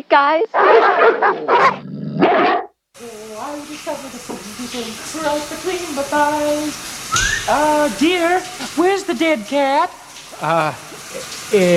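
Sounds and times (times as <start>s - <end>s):
hiss: 0.0s - 11.7s
speech: 0.1s - 11.7s
dogs barking and yelping: 0.6s - 2.8s, 7.1s - 7.5s.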